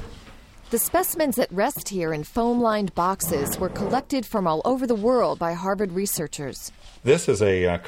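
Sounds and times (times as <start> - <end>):
speech: 0.7 - 7.8
cabinet drawer being pulled open: 3.2 - 4.2.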